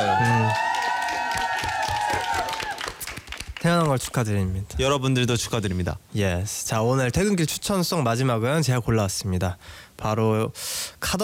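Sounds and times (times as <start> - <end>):
small group clapping at a birthday celebration: 0.0 - 4.2
speech: 3.6 - 11.2.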